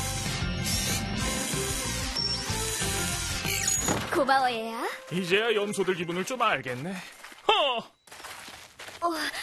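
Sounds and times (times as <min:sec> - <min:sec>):
screwdriver unscrewing a loose door: 0:00.6 - 0:03.8
speech: 0:04.2 - 0:07.9, 0:09.0 - 0:09.4.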